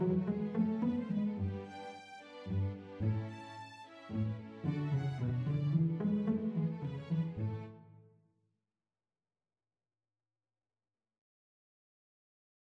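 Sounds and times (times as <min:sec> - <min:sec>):
cello: 0:00.0 - 0:08.0.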